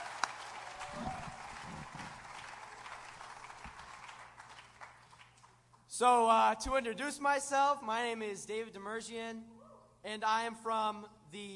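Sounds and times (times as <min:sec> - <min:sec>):
faint cheers: 0:00.0 - 0:02.1
crowd applause: 0:00.0 - 0:05.6
speech: 0:06.0 - 0:11.5.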